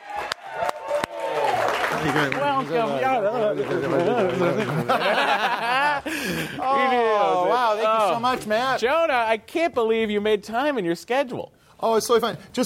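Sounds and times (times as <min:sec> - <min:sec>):
audience cheering and whoops at a comedy show: 0:00.0 - 0:01.8
audience clapping at a comedy show: 0:00.0 - 0:05.6
laughter: 0:02.0 - 0:08.1
speech: 0:02.0 - 0:12.6.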